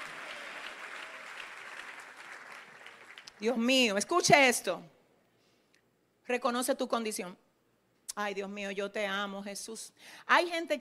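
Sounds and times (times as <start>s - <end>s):
audience applause: 0.0s - 3.4s
speech: 3.4s - 5.0s, 6.3s - 7.4s, 8.2s - 10.7s.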